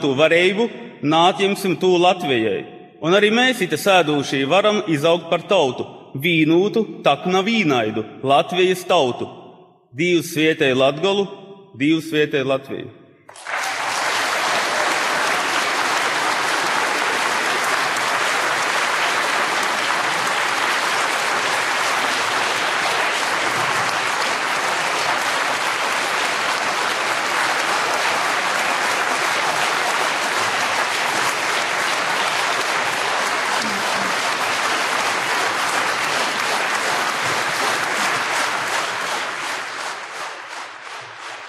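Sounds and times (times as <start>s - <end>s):
speech: 0.0s - 13.6s
loud applause after a speech: 13.3s - 41.4s.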